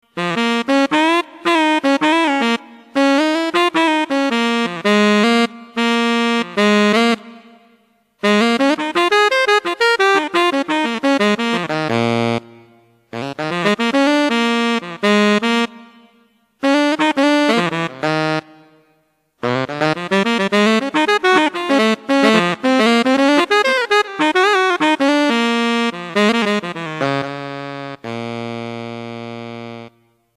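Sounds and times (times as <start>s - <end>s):
blues music: 0.0s - 30.0s.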